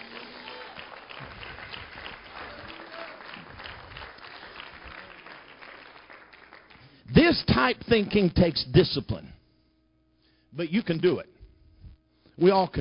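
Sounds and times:
audience hand clapping: 0.0 - 7.0
speech: 7.3 - 9.4, 10.6 - 11.3, 12.4 - 12.7.

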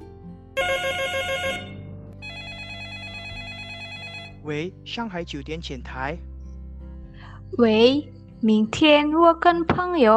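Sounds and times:
telephone ringing: 0.6 - 4.5
speech: 4.5 - 6.3, 7.5 - 10.1.

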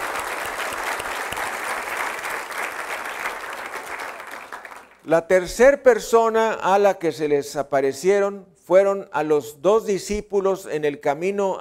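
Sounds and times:
audience applause: 0.0 - 5.0
speech: 5.0 - 11.5.

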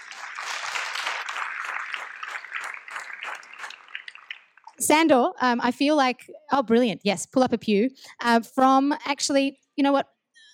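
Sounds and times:
audience applause: 0.0 - 4.4
speech: 4.8 - 10.2.

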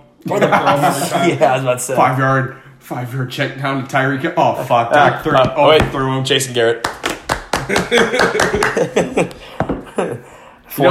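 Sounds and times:
laughter: 0.2 - 1.6, 7.6 - 10.4
speech: 0.3 - 7.0, 7.7 - 10.9
hands clapping: 6.8 - 9.9.

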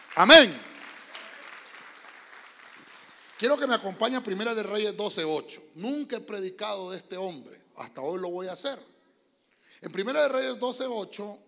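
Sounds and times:
applause: 0.0 - 4.7
speech: 0.2 - 0.6, 3.4 - 8.9, 9.8 - 11.4.

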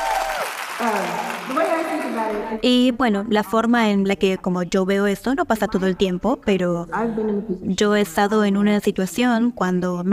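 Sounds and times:
audience applause: 0.0 - 2.4
speech: 0.8 - 1.6, 2.3 - 10.1.

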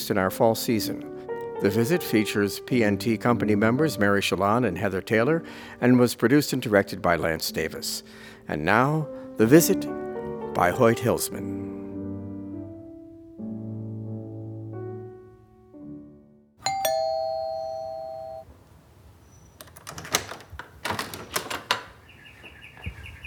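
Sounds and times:
speech: 0.1 - 11.7
doorbell chiming at the front door: 16.6 - 18.5.

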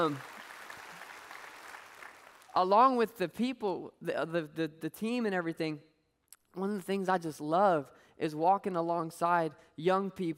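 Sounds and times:
speech: 0.0 - 0.3, 2.6 - 5.9, 6.6 - 10.3
audience hand clapping: 0.0 - 2.6.

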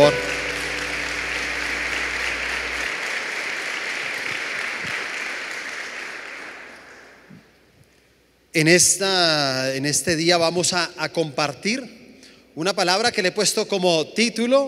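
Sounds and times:
speech: 0.0 - 0.4, 8.6 - 12.0, 12.6 - 14.6
audience applauding: 0.0 - 7.5.

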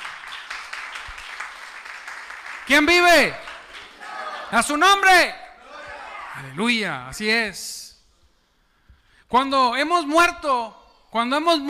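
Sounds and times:
audience applauding: 0.0 - 4.7
speech: 2.7 - 3.4, 4.5 - 5.4, 6.4 - 7.9, 9.3 - 11.6.

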